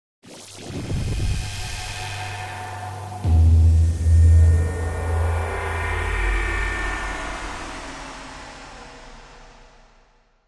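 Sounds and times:
electronic wash ripple: 0.2 - 7.6.

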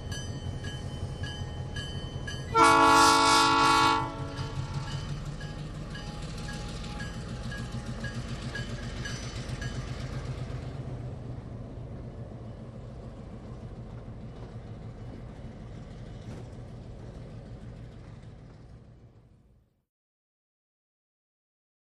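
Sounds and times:
train moving slowly: 0.0 - 19.8.

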